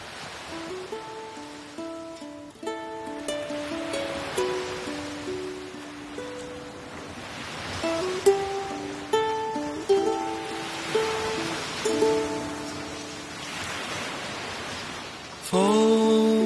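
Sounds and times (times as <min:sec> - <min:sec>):
ocean waves: 0:00.0 - 0:16.4
soft plucked melodic notes as a gentle musical introduction: 0:00.6 - 0:07.2, 0:07.8 - 0:13.4.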